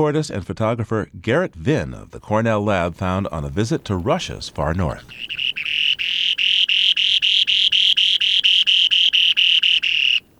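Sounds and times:
speech: 0:00.0 - 0:05.4
spoon-billed sandpiper song, buzzy high trill: 0:02.2 - 0:10.3.

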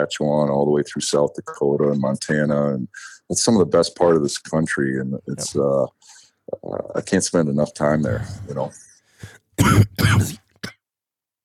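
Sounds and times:
speech: 0:00.0 - 0:10.4
man coughing: 0:09.6 - 0:10.8.

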